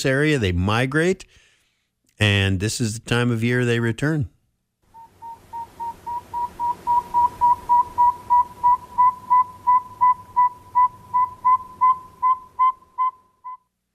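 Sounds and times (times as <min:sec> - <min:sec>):
speech: 0:00.0 - 0:01.4, 0:02.2 - 0:04.3
northern saw-whet owl calling: 0:04.9 - 0:13.6.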